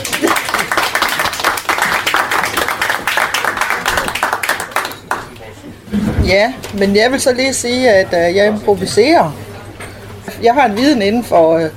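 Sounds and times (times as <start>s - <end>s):
audience applause: 0.0s - 5.4s
speech: 6.3s - 9.4s, 10.4s - 11.7s.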